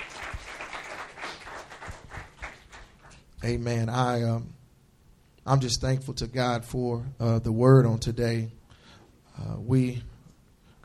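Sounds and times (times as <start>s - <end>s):
audience applause, hand clapping: 0.0s - 3.2s
speech: 3.4s - 4.6s, 5.5s - 8.6s, 9.4s - 10.1s.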